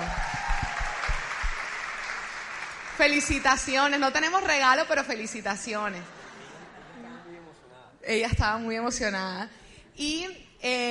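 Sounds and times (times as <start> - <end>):
audience applause: 0.0 - 3.7
speech: 3.0 - 6.2, 8.1 - 10.8
laughter: 6.0 - 7.6.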